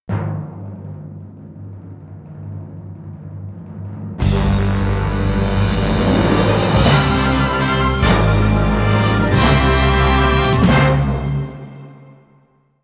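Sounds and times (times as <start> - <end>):
fanfare: 4.2 - 12.4.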